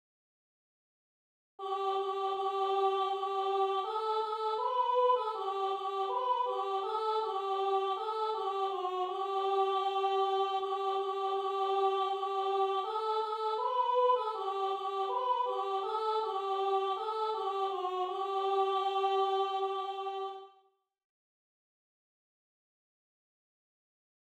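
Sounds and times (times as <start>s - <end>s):
soprano singing: 1.6s - 20.5s.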